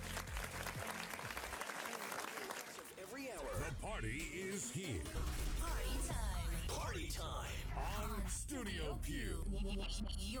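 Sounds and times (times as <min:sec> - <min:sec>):
applause: 0:00.0 - 0:03.7
speech: 0:03.2 - 0:10.3.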